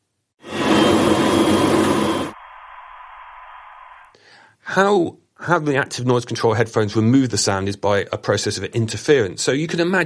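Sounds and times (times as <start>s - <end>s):
machinery noise: 0.4s - 4.1s
speech: 4.8s - 10.0s.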